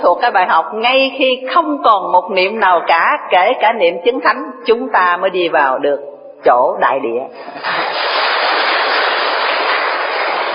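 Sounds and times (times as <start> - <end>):
speech: 0.1 - 7.9
audience applause: 7.6 - 10.5.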